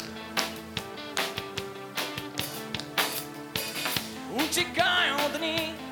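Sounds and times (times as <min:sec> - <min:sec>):
people clapping hands: 0:00.0 - 0:03.3
speech: 0:04.5 - 0:05.8.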